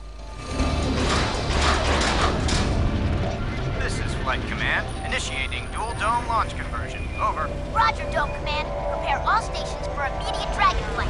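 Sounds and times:
large metal doors sliding open: 0.2 - 4.4
speech: 4.3 - 11.0.

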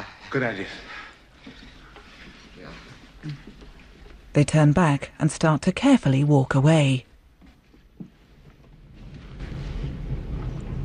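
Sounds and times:
speech: 0.3 - 1.6, 2.7 - 3.5, 4.4 - 7.1
approaching train rumbling: 8.5 - 10.8.

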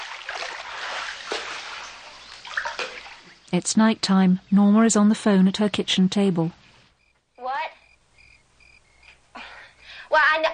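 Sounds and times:
water splashing as someone swims away: 0.0 - 3.5
speech: 3.5 - 6.6.

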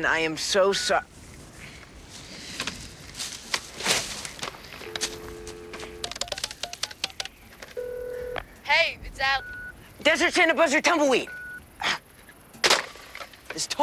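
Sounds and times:
speech: 0.0 - 1.2, 8.8 - 11.4, 13.6 - 13.8
touch-tone dialing beeps on a phone at a gas station: 0.7 - 1.0, 4.8 - 8.6, 9.2 - 9.8, 11.2 - 11.6
clicks and knocks: 4.4 - 8.5.

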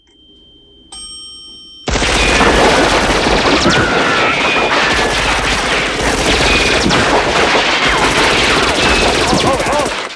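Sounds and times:
quiet tonal elevator chime: 0.0 - 1.9
automatic gunfire aimed at a descending elevator: 1.9 - 10.1.

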